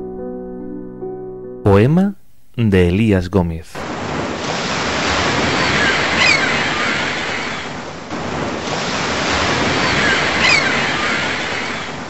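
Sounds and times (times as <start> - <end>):
speech: 1.8 - 3.9
ocean waves breaking on shore: 3.8 - 12.0.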